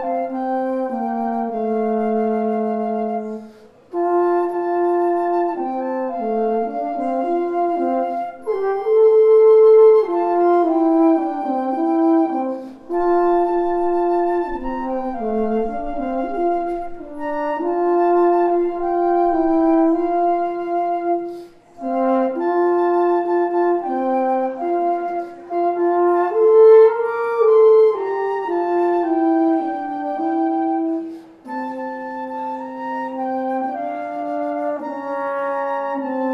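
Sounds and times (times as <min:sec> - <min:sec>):
flute and horn duet of an African American spiritual: 0:00.0 - 0:36.3.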